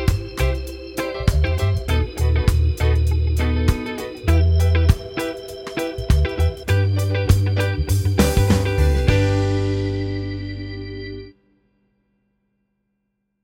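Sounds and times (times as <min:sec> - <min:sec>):
chord progressions with applied chords: 0:00.0 - 0:11.3.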